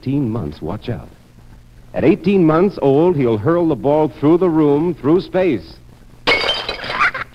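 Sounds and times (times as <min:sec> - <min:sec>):
speech: 0:00.0 - 0:01.2, 0:01.9 - 0:05.8
vase shattering: 0:06.3 - 0:07.2.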